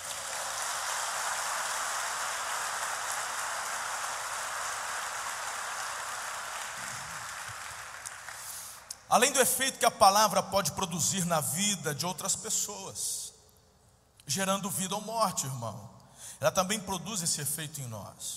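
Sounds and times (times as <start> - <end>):
audience applause: 0.0 - 8.7
speech: 9.1 - 13.2, 14.3 - 18.3.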